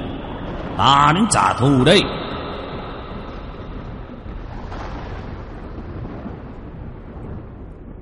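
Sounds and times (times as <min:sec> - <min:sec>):
thunder crash sound effect: 0:00.0 - 0:08.0
speech: 0:00.8 - 0:02.3.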